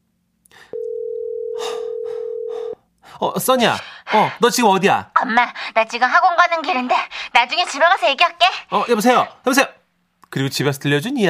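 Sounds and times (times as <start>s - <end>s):
soft breathing: 0.5s - 4.4s
phone ringback tone: 0.8s - 2.8s
speech: 3.2s - 11.2s.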